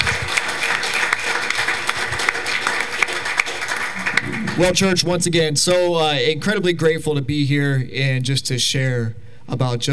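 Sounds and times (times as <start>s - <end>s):
crowd applause: 0.0s - 5.3s
speech: 4.6s - 9.9s.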